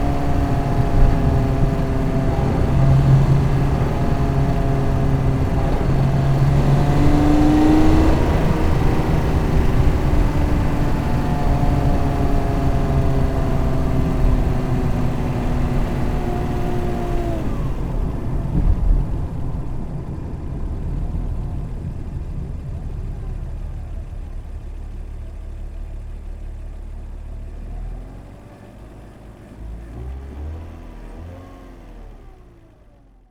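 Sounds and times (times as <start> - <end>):
BMW E46 3 Series car engine accelerating: 0.0 - 33.2.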